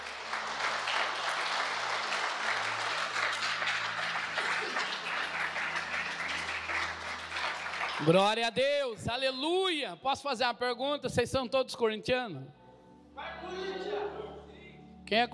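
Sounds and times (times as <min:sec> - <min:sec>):
audience applause: 0:00.0 - 0:08.8
speech: 0:08.0 - 0:12.6, 0:15.1 - 0:15.3.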